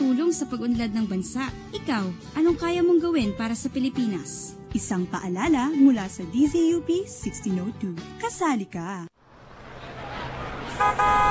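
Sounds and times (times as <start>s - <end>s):
speech: 0.3s - 9.2s, 10.9s - 11.3s
road and engine noise: 9.2s - 11.3s
jeepney horn honking as it arrives: 10.7s - 11.3s.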